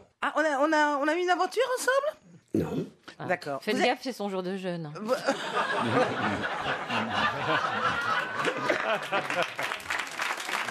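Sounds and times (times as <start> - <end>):
speech: 0.2 - 9.5
laughter: 5.1 - 10.1
studio audience applause: 6.8 - 10.7.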